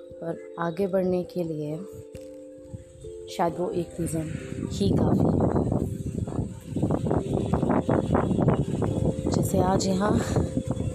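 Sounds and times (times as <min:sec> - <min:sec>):
speech: 0:00.2 - 0:02.2, 0:03.3 - 0:06.0, 0:07.4 - 0:10.6
wind blowing: 0:01.9 - 0:10.9.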